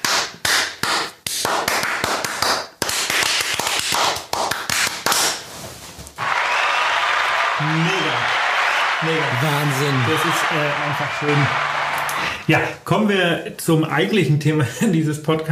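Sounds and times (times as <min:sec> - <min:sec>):
hands clapping together: 0:00.0 - 0:05.5, 0:06.2 - 0:12.7
speech: 0:09.1 - 0:11.8, 0:12.5 - 0:15.4.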